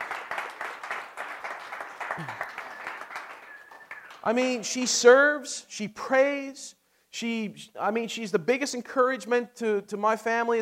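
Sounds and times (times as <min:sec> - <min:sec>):
audience applause: 0:00.0 - 0:04.6
speech: 0:02.2 - 0:02.4, 0:04.2 - 0:10.6.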